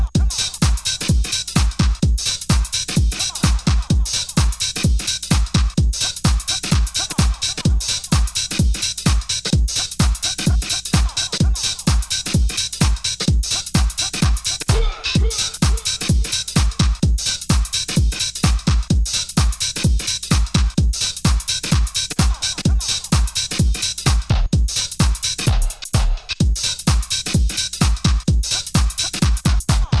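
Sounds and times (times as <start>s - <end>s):
reggae music: 0.0s - 29.9s.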